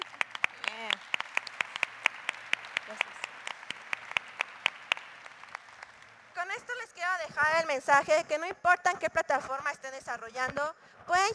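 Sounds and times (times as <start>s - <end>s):
audience applause: 0.0s - 6.4s
speech: 6.6s - 11.3s.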